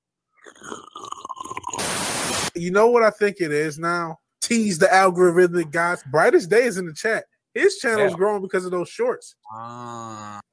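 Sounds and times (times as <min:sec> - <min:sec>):
ASMR drinking sips and swallows: 0:00.4 - 0:02.1
hiss: 0:01.8 - 0:02.5
speech: 0:02.6 - 0:10.5.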